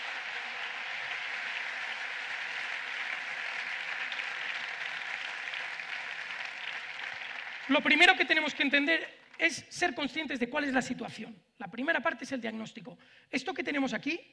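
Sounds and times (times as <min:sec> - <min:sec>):
audience applause: 0:00.0 - 0:08.0
speech: 0:07.7 - 0:14.3.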